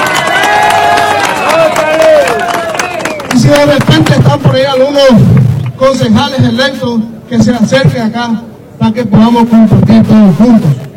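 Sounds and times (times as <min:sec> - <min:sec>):
audience applause: 0:00.0 - 0:04.1
speech: 0:04.6 - 0:10.8.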